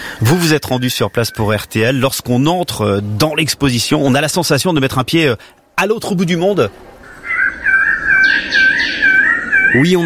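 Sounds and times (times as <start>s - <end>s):
birds of paradise singing in a museum exhibition: 0.0s - 2.1s, 6.9s - 10.0s
speech: 0.2s - 7.0s, 9.7s - 10.0s.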